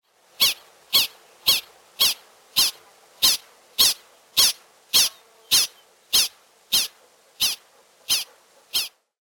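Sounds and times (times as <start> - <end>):
prairie dog squeaky chirps: 0.4 - 9.0.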